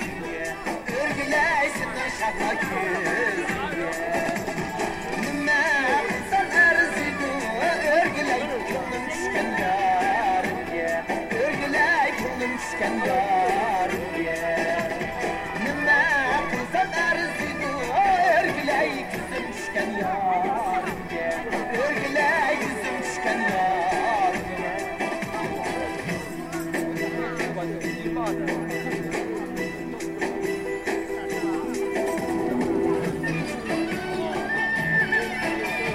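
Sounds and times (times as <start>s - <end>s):
crowd voices: 0.0s - 35.9s
square dance music at Harbin Railway Park: 0.0s - 35.9s.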